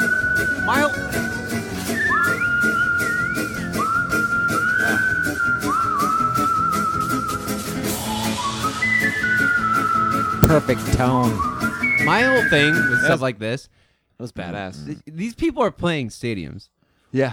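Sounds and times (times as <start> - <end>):
professional whistler whistling a tune: 0.0 - 13.2
speech: 10.5 - 17.3.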